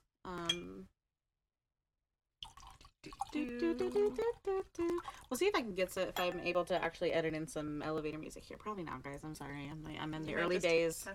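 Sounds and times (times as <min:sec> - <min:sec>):
wine pouring into a glass: 0:02.4 - 0:05.4
speech: 0:03.0 - 0:11.1
ringing glass clink: 0:06.1 - 0:06.9.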